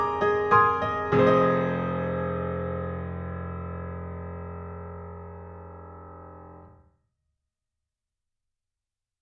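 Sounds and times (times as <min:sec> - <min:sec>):
Model D grand piano: 0:00.0 - 0:06.8.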